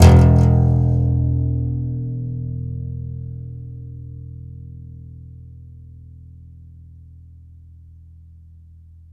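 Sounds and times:
contrabass balalaika plucked strings: 0.0 - 6.6.

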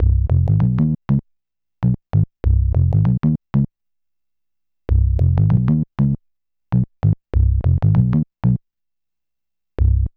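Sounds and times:
bass: 0.0 - 3.7, 4.9 - 8.6, 9.8 - 10.1.

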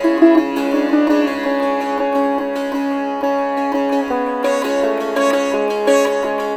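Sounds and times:
sitar: 0.0 - 6.5.

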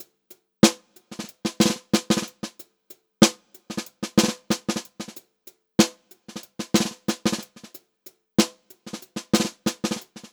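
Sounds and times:
groovy funk drum loop variation: 0.6 - 2.6, 3.2 - 5.2, 5.8 - 7.8, 8.4 - 10.3.

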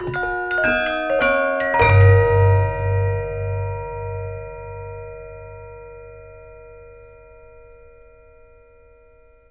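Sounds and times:
gamelan hits: 0.0 - 7.1.

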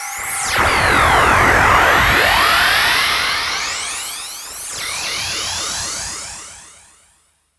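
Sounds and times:
space sound effects: 0.4 - 6.8.

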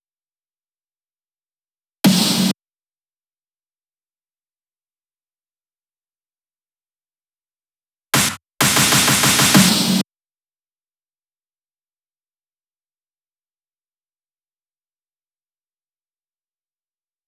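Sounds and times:
snare drum fills loop at 128 BPM: 8.2 - 10.0.

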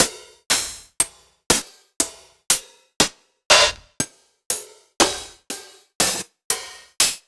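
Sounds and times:
open hi-hats: 3.5 - 7.2.

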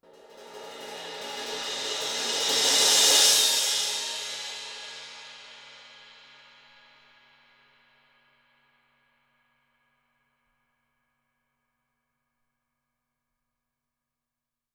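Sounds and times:
crash cymbal: 0.1 - 6.6.

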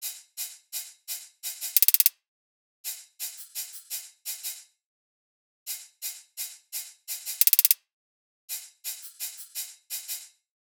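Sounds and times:
hi-hat loop at 85 bpm: 1.4 - 2.1, 2.9 - 4.6, 5.7 - 7.8, 8.5 - 10.3.

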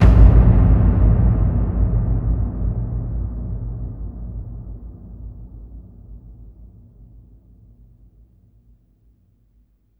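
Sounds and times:
big booming ambient drums: 0.0 - 8.3.

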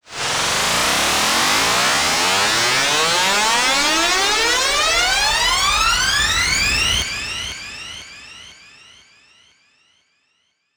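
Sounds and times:
long noisy riser: 0.1 - 7.0.

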